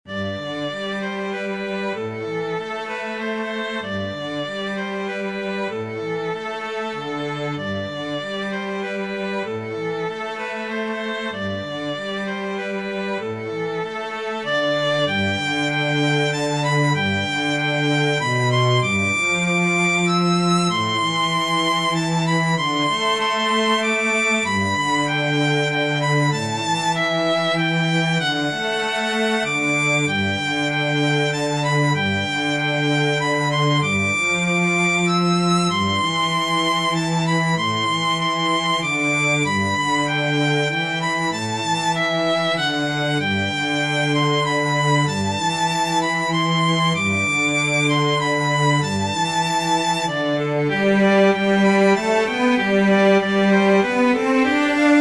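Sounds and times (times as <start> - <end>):
cello and violin duet: 0.0 - 54.9.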